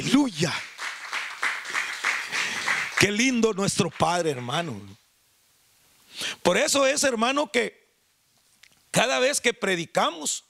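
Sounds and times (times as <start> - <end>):
speech: 0.0 - 0.6, 3.0 - 5.0, 6.2 - 7.8, 9.0 - 10.4
audience applauding: 0.0 - 4.7.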